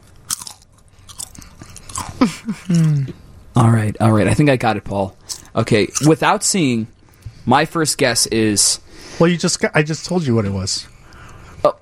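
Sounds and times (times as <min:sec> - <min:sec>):
crunching and chewing a barbecue potato chip: 0:00.0 - 0:02.9
speech: 0:02.2 - 0:11.0.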